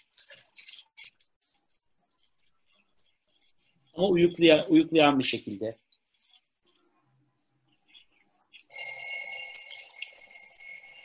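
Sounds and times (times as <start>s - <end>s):
speech: 4.0s - 5.8s
alarm clock ringing inside a bathroom cabinet: 8.7s - 11.0s.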